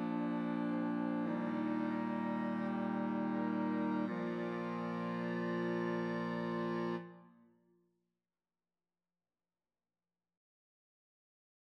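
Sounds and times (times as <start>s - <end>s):
clarinet: 0.0s - 7.5s.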